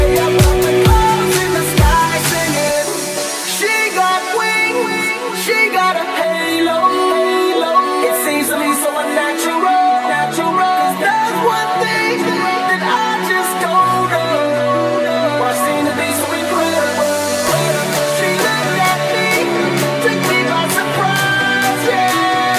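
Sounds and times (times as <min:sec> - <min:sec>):
pop music snippets: 0:00.0 - 0:22.5.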